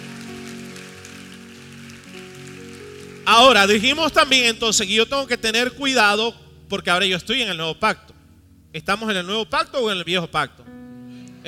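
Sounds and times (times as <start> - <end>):
audience applauding: 0.0 - 4.0
sustained organ or keyboard chords: 0.0 - 11.4
speech: 3.3 - 8.1, 8.7 - 10.6.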